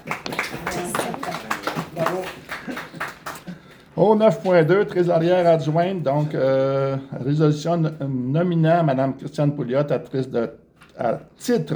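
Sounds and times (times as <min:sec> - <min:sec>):
audience clapping: 0:00.0 - 0:03.9
speech: 0:04.0 - 0:11.7.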